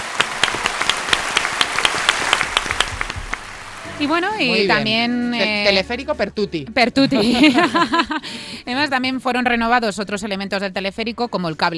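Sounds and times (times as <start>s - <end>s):
applause: 0.0s - 4.4s
speech: 4.0s - 11.7s
laughter: 7.0s - 8.4s.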